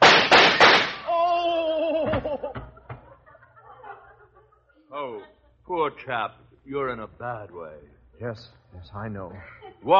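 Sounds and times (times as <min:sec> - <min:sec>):
gunshots in a radio drama: 0:00.0 - 0:01.1
man groaning: 0:01.1 - 0:02.4
laughter: 0:01.3 - 0:05.2
speech: 0:05.8 - 0:09.9.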